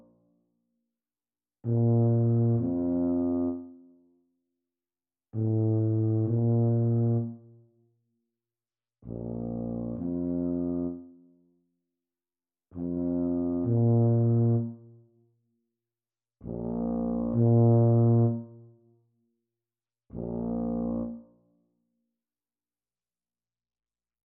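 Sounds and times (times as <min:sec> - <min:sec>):
Bb tuba duet practice: 0:01.7 - 0:03.7, 0:05.4 - 0:07.4, 0:09.1 - 0:11.0, 0:12.8 - 0:14.8, 0:16.5 - 0:18.6, 0:20.2 - 0:21.2.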